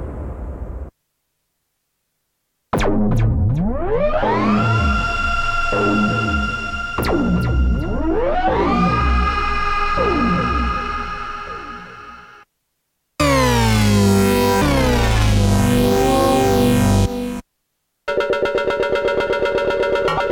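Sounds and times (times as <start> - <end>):
Korg Prologue synthesizer: 2.7 - 12.4, 13.2 - 17.4, 18.1 - 20.3.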